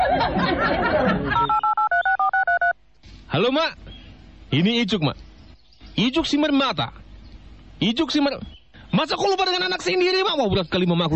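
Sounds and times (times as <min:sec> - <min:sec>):
laughter: 0:00.0 - 0:01.6
telephone keypad tones as a number is dialed: 0:01.4 - 0:02.7
speech: 0:03.4 - 0:03.8, 0:04.5 - 0:05.3, 0:06.0 - 0:07.0, 0:07.8 - 0:11.1.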